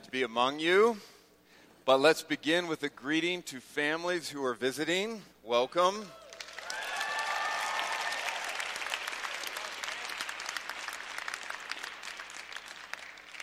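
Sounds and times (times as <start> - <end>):
speech: 0.1 - 1.1, 1.8 - 6.2
shrill whoops: 6.1 - 8.5
audience cheering and applauding: 6.2 - 13.4.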